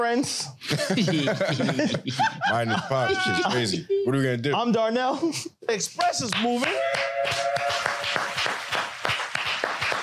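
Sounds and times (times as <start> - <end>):
speech: 0.0 - 7.6
laughter: 0.6 - 4.1
hand clapping: 6.0 - 10.0.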